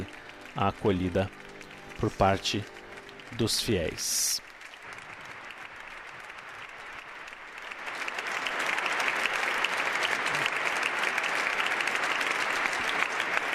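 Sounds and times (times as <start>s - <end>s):
speech: 0.0s - 1.4s, 2.0s - 2.7s, 3.3s - 4.5s
audience applauding in church: 0.0s - 13.5s.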